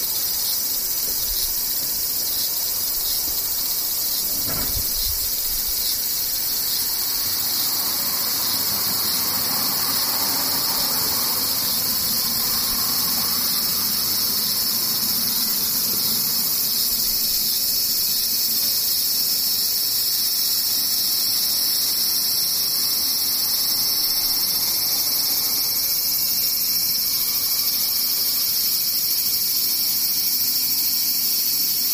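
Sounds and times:
cicadas buzzing: 0:00.0 - 0:31.9
low thump: 0:04.1 - 0:05.8.

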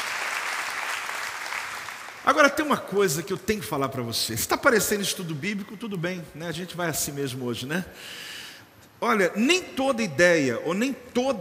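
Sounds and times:
audience applause: 0:00.0 - 0:02.2
speech: 0:02.2 - 0:08.4, 0:09.0 - 0:11.3.

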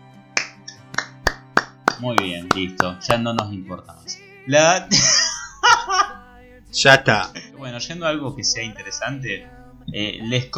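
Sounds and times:
one person clapping slowly: 0:00.4 - 0:03.5
speech: 0:02.0 - 0:05.3, 0:06.7 - 0:10.5
laughter: 0:04.8 - 0:07.1, 0:07.9 - 0:10.5
low steady hum: 0:04.8 - 0:10.5.

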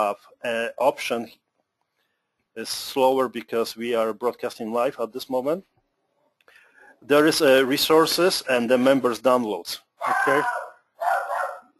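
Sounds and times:
speech: 0:00.0 - 0:01.4, 0:02.6 - 0:05.7, 0:07.0 - 0:10.6
dog barking: 0:10.0 - 0:11.7.

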